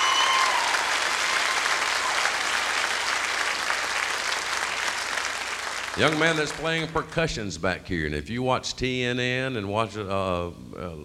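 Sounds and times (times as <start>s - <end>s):
audience applause welcoming a bass guitar player on stage: 0.0s - 7.2s
speech: 6.0s - 11.0s.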